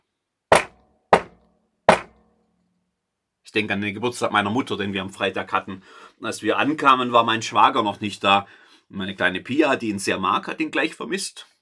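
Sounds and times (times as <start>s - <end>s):
knocking on a door: 0.5s - 2.2s
speech: 3.5s - 11.5s.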